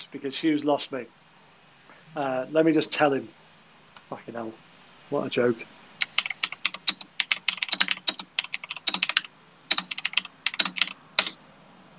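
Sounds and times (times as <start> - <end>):
speech: 0.1 - 1.2, 2.1 - 3.4, 4.1 - 5.8
typing on a computer keyboard: 6.0 - 11.4.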